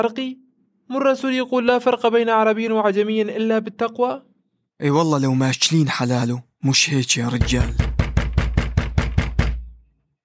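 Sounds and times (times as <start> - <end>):
speech: 0.0 - 7.8
knocking on a door: 7.2 - 9.8.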